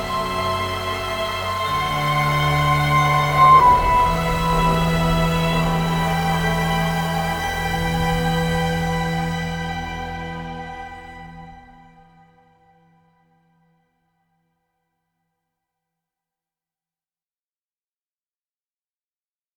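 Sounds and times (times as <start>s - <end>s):
remorse ambient music: 0.0s - 13.1s.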